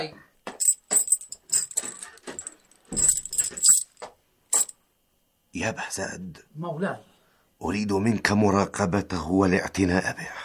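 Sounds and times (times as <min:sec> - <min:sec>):
speech: 0:00.0 - 0:00.2, 0:05.6 - 0:10.4
keys jangling: 0:00.6 - 0:04.7.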